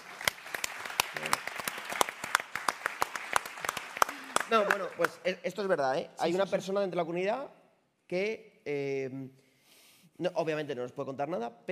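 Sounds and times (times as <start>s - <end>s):
applause: 0.0s - 5.3s
speech: 4.5s - 9.4s, 10.2s - 11.6s.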